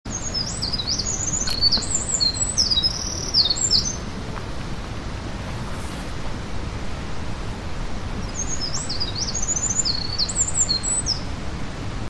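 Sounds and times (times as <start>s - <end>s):
Eurasian wren singing: 0.1s - 4.0s, 8.2s - 11.2s
rumbling background noise: 0.1s - 12.0s.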